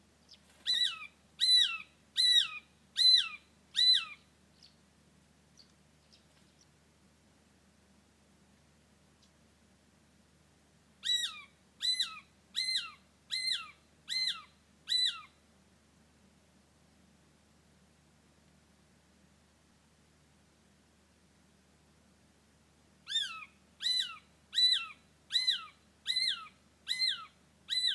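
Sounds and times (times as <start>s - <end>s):
shikra calling: 0.2s - 4.8s, 11.0s - 15.4s, 23.0s - 27.9s.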